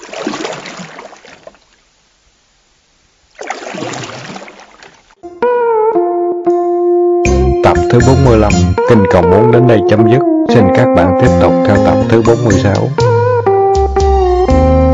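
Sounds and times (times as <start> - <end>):
oars sweeping through water paddling a small canoe-like boat: 0.0 - 2.0, 3.3 - 5.2
music: 5.2 - 14.9
speech: 7.9 - 13.1.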